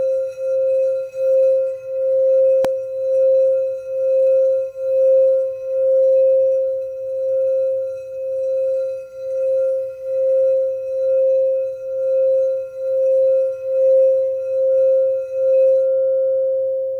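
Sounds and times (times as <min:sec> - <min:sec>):
528 bowl tone: 0:00.0 - 0:16.9.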